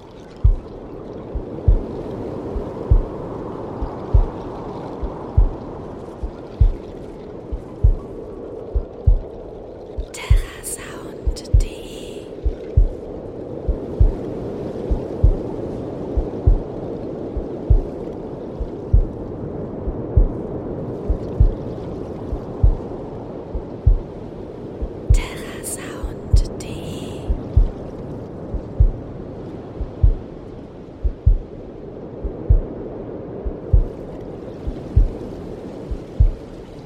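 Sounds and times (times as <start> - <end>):
waves: 0.0 - 36.8
heartbeat: 0.4 - 2.0, 2.6 - 6.9, 7.5 - 14.3, 14.9 - 20.4, 21.0 - 24.2, 24.8 - 27.9, 28.5 - 29.1, 29.8 - 30.3, 31.0 - 31.6, 32.2 - 32.8, 33.4 - 34.0, 34.6 - 35.3, 35.9 - 36.4.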